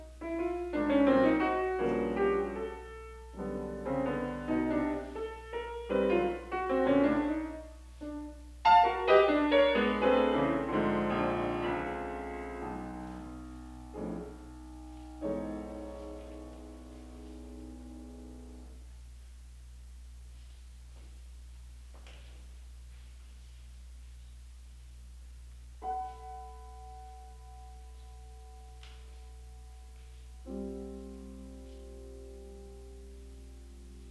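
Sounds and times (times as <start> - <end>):
six small piano pieces: 0.0 - 19.0, 25.8 - 34.0.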